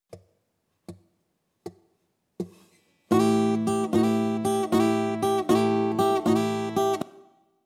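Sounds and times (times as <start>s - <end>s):
blues rock guitar in open tunings: 3.1s - 7.0s.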